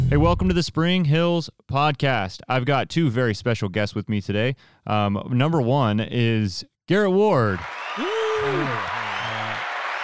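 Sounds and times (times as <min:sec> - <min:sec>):
speech: 0:00.1 - 0:09.0
applause sound effect: 0:07.6 - 0:10.0.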